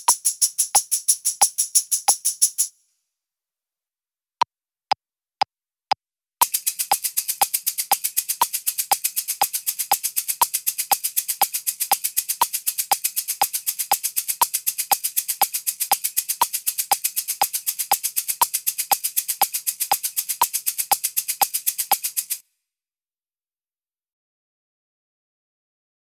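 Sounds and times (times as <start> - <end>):
shakers playing accented sixteenth notes: 0.0 - 2.7, 6.4 - 22.4.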